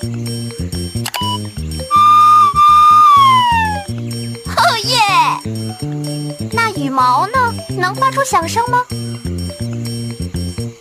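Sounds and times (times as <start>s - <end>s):
bouncy rhythmic music backing: 0.0s - 10.8s
fire truck siren: 1.9s - 3.9s
speech: 7.0s - 9.1s.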